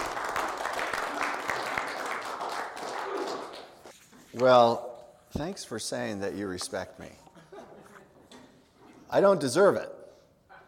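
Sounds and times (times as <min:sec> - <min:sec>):
audience applause: 0:00.0 - 0:03.9
speech: 0:04.4 - 0:07.2, 0:09.1 - 0:10.0.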